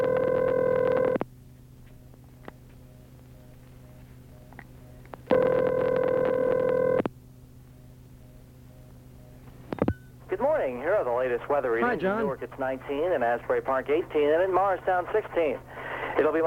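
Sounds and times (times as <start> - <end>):
telephone ringback tone on a call to a weather line: 0.0 - 1.2, 3.8 - 7.0
speech: 10.8 - 16.4.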